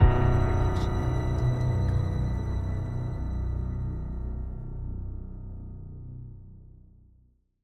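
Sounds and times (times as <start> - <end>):
mysterious ident jingle: 0.0 - 5.4.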